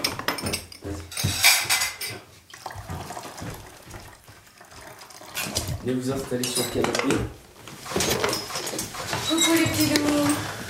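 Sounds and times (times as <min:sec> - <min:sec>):
dishes and cutlery clattering as a table is cleared: 0:00.0 - 0:02.3, 0:05.3 - 0:10.6
running water: 0:02.5 - 0:06.6
speech: 0:05.8 - 0:07.4, 0:09.4 - 0:10.5.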